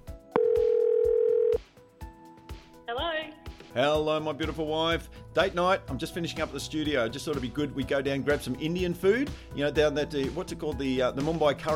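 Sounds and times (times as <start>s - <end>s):
loud steady telephone dial tone while calling: 0.4s - 1.6s
speech: 3.8s - 11.7s.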